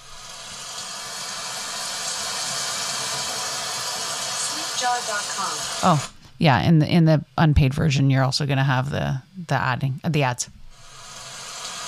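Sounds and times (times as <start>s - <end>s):
rain hiss from a thunderstorm sleep sound app: 0.0s - 6.2s, 10.7s - 11.8s
speech: 4.8s - 10.6s.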